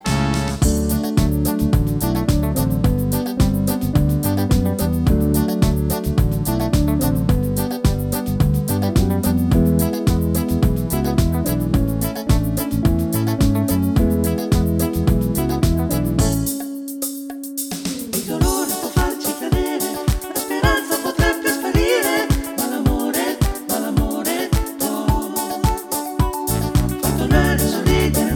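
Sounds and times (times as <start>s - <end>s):
disco cumbia music: 0.0s - 28.3s.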